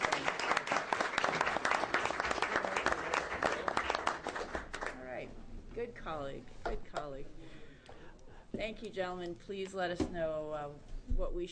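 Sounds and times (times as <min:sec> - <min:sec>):
small round of applause at a legislative committee hearing: 0:00.0 - 0:05.2
speech: 0:06.1 - 0:07.6, 0:08.6 - 0:11.4.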